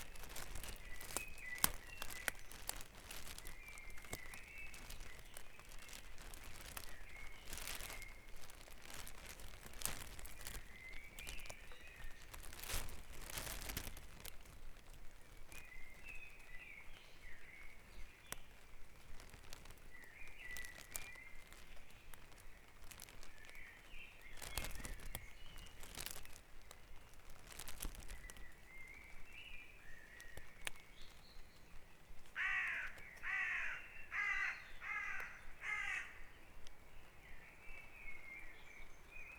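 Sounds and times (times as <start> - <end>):
bird song with rippling warbled notes: 0.0 - 13.6, 15.2 - 39.3
sharp clicks and crackling noise: 0.0 - 15.6, 18.2 - 23.7, 24.4 - 28.5, 30.2 - 31.2
harsh caws: 32.4 - 36.3.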